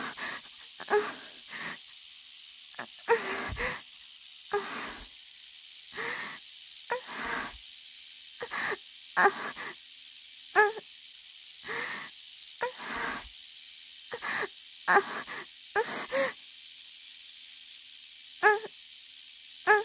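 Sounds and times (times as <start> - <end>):
woman moaning: 0.0 - 1.3, 3.1 - 3.8, 4.5 - 5.0, 6.9 - 7.6, 8.4 - 9.7, 10.6 - 10.8, 12.6 - 13.2, 14.2 - 16.4, 18.4 - 18.7, 19.7 - 19.8.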